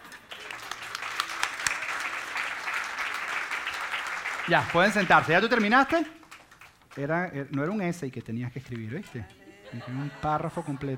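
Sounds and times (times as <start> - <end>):
audience applause: 0.0 - 7.1
speech: 4.5 - 6.2, 7.0 - 10.9
laughter: 9.4 - 10.9.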